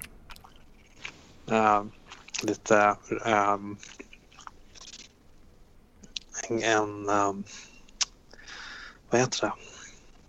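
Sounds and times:
person chewing and eating slices of roast beef: 0.0s - 1.2s, 1.9s - 2.5s, 3.8s - 5.1s
speech: 1.5s - 4.1s, 6.5s - 7.7s, 9.1s - 9.7s.

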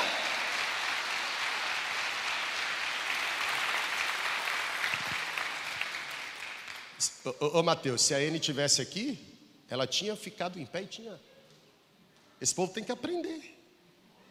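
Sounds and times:
people clapping: 0.0s - 7.1s
speech: 7.0s - 11.3s, 12.4s - 13.5s.

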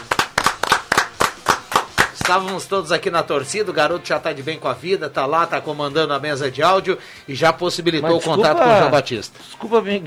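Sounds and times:
hand claps: 0.0s - 2.7s
speech: 2.3s - 10.0s
laughter: 8.1s - 9.1s.

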